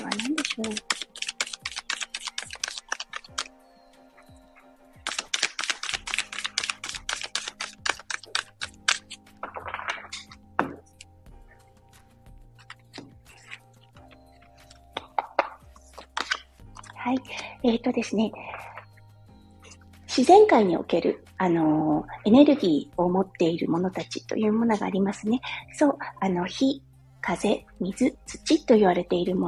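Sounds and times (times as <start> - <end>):
oracle cards being shuffled and drawn: 0.0 - 3.5, 5.0 - 11.1, 11.9 - 17.6
speech: 0.6 - 1.0, 17.6 - 18.6, 20.2 - 29.4.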